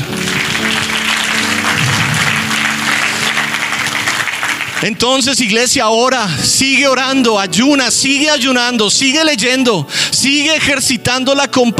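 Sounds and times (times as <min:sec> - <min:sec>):
applause: 0:00.0 - 0:05.3
speech: 0:04.8 - 0:11.7.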